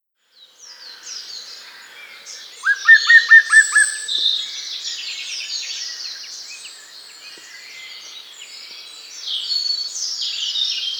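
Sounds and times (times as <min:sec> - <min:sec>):
bird song of clear slurred notes: 0:02.6 - 0:04.3.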